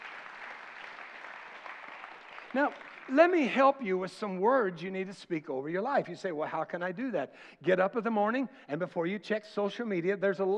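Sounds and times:
crowd clapping: 0.0s - 3.7s
speech: 2.5s - 10.5s.

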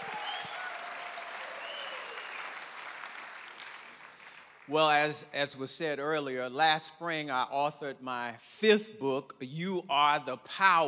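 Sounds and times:
audience round of applause: 0.0s - 4.7s
speech: 4.7s - 10.8s.

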